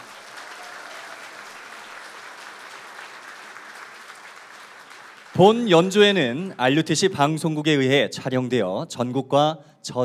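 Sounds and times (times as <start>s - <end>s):
audience applause: 0.0s - 6.4s
speech: 5.4s - 10.0s.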